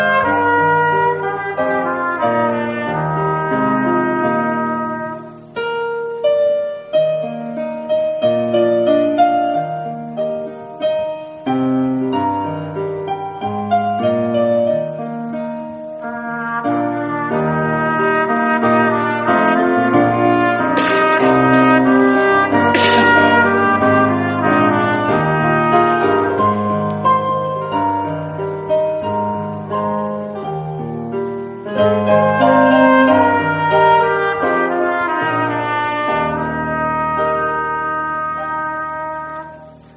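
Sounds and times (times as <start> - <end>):
trumpet: 0.0 - 5.7, 16.0 - 27.3, 31.7 - 39.9
piano: 0.0 - 39.9.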